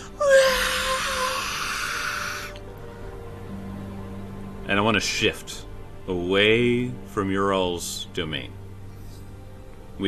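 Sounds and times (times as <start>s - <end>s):
ghostly wail: 0.0s - 2.7s
speech: 4.7s - 8.6s.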